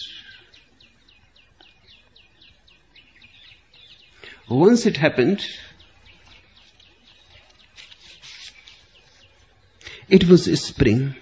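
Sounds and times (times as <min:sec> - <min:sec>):
birds singing: 0:00.0 - 0:11.2
speech: 0:04.5 - 0:05.7, 0:10.1 - 0:11.2.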